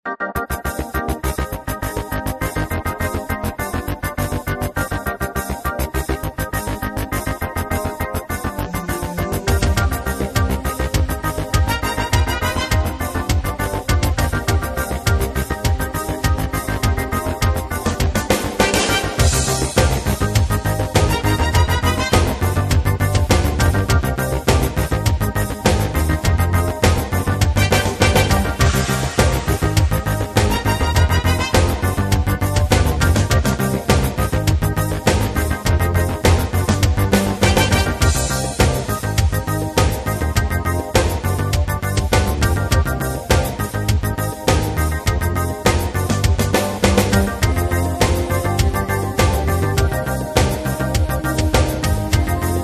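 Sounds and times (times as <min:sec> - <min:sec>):
lofi backing track: 0:00.0 - 0:52.6.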